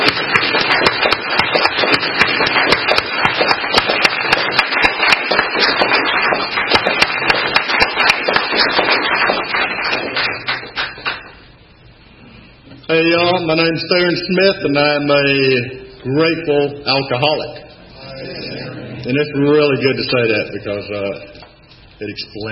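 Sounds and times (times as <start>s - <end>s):
audience applause: 0.0s - 11.4s
speech: 13.3s - 17.6s, 19.0s - 21.4s, 22.0s - 22.5s.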